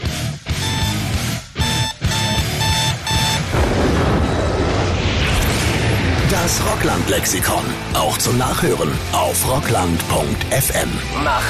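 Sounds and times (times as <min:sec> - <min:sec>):
alarm-like ringing tone: 0:00.6 - 0:04.6
self-destructing tape explosion blast: 0:03.4 - 0:08.0
speech: 0:06.5 - 0:11.4.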